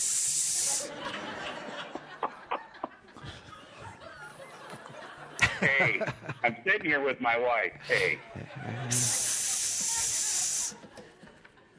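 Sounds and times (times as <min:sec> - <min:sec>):
burst of hissing: 0:00.0 - 0:00.9, 0:08.9 - 0:10.8
laughter: 0:00.6 - 0:07.1, 0:07.7 - 0:11.7
speech: 0:05.6 - 0:09.2.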